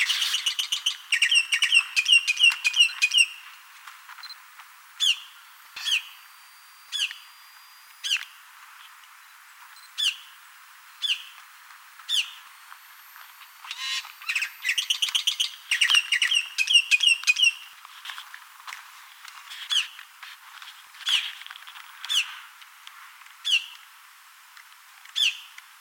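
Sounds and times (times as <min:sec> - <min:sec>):
bird chirps and calls: 0:00.0 - 0:03.4, 0:05.0 - 0:06.2, 0:06.9 - 0:07.3, 0:08.0 - 0:08.3, 0:09.9 - 0:10.4, 0:11.0 - 0:11.4, 0:12.1 - 0:12.5, 0:13.7 - 0:17.7, 0:23.4 - 0:23.8, 0:25.2 - 0:25.5.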